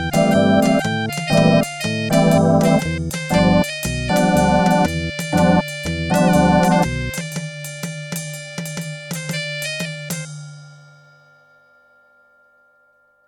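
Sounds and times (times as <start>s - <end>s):
MIDI blues music: 0.0s - 7.2s.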